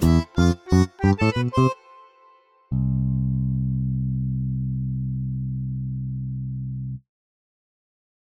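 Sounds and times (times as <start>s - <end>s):
Balkan backing track: 0.0s - 6.1s.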